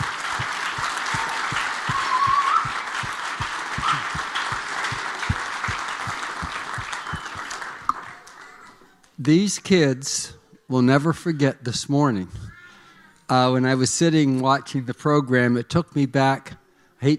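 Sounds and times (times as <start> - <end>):
audience clapping: 0.0 - 8.6
speech: 9.3 - 12.4, 13.3 - 17.1.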